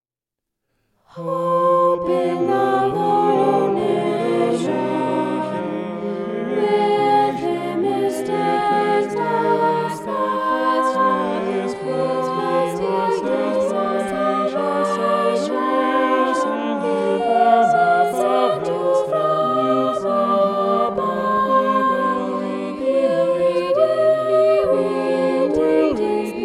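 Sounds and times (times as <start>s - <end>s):
polyphonic vocal sound: 1.1s - 26.4s.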